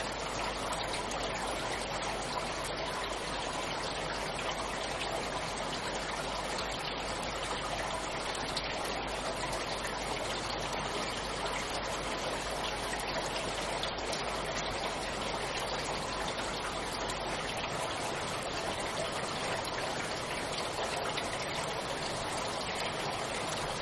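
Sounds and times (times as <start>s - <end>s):
rain: 0.0s - 23.8s.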